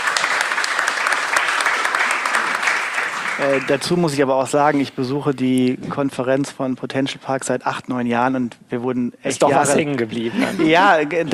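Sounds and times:
applause: 0:00.0 - 0:04.3
speech: 0:03.4 - 0:11.3.

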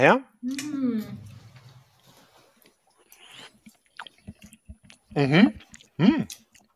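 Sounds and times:
chewing a baked dish with a crust: 0:02.6 - 0:06.7.

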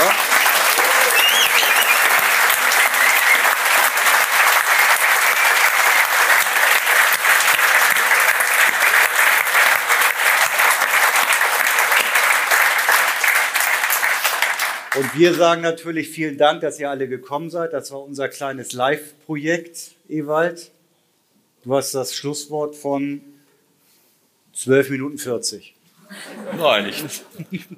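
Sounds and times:
live audience applause: 0:00.0 - 0:15.4
speech: 0:15.1 - 0:20.8, 0:21.6 - 0:23.3, 0:24.6 - 0:27.7
laughter: 0:26.0 - 0:27.7.

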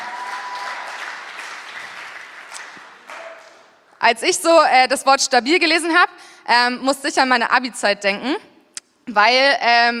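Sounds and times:
audience applause: 0:00.0 - 0:03.8
speech: 0:04.0 - 0:08.5, 0:09.1 - 0:09.9.

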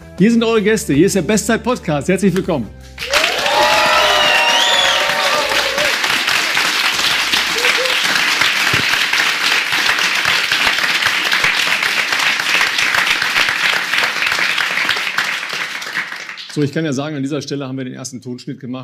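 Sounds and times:
speech: 0:00.2 - 0:03.1, 0:16.6 - 0:18.8
whoops and cheers: 0:03.0 - 0:06.6, 0:07.4 - 0:08.2
live audience applause: 0:03.0 - 0:16.8.

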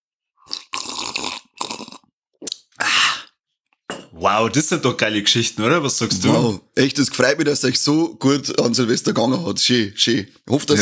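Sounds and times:
person slurping coffee: 0:00.4 - 0:03.4
speech: 0:04.2 - 0:10.7.

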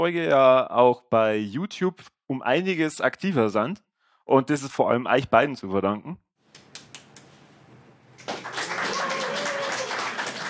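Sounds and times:
speech: 0:00.0 - 0:06.2
spontaneous applause: 0:08.2 - 0:10.4.

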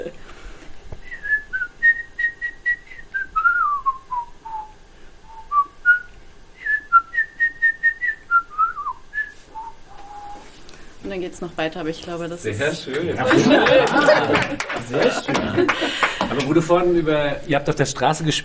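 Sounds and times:
person whistling a bird-like melody: 0:01.0 - 0:10.6
speech: 0:11.2 - 0:18.4
laughter: 0:12.3 - 0:17.0.

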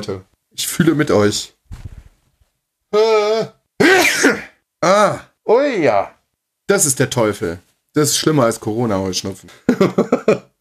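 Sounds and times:
speech: 0:00.0 - 0:01.9, 0:02.9 - 0:10.5
sneeze: 0:03.8 - 0:04.6.

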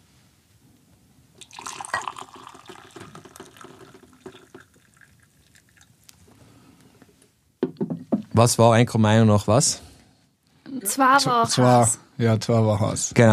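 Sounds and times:
glass clinking: 0:01.4 - 0:05.8
water poured into a glass: 0:01.4 - 0:06.0
speech: 0:08.4 - 0:09.9, 0:11.0 - 0:13.3.

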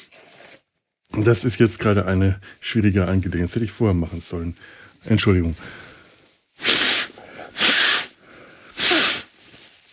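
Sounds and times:
speech: 0:01.2 - 0:05.9
nasal snorts forcing air through a blocked broken nose: 0:06.6 - 0:08.1, 0:08.8 - 0:09.3.

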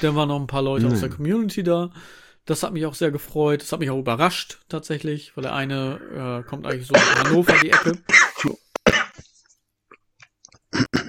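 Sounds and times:
speech: 0:00.0 - 0:09.0
person sputtering and coughing after choking on own saliva: 0:05.9 - 0:09.3, 0:10.6 - 0:11.0.

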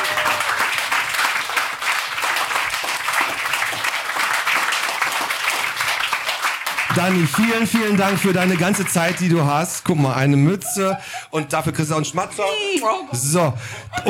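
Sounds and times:
sizable audience applause for a performer: 0:00.0 - 0:10.9
laughter: 0:07.0 - 0:14.0
speech: 0:07.0 - 0:14.0.

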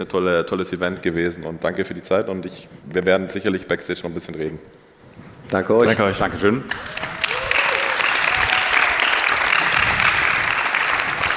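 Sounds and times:
speech: 0:00.0 - 0:04.8, 0:05.5 - 0:07.0
sustained audience applause: 0:06.7 - 0:11.3.

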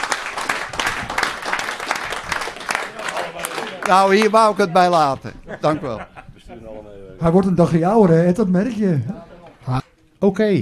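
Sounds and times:
audience applause: 0:00.0 - 0:05.1
laughter: 0:02.7 - 0:07.0
speech: 0:03.9 - 0:10.5.

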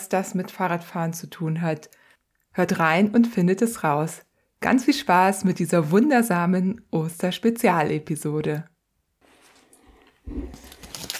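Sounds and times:
speech: 0:00.1 - 0:02.0, 0:02.6 - 0:08.7
crinkling of a foil-wrapped chocolate Easter egg: 0:10.3 - 0:11.1.

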